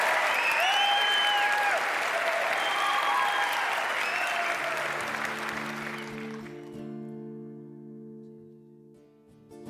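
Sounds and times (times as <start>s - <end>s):
audience applause at the Brown Theater in Louisville Kentucky: 0.0s - 6.8s.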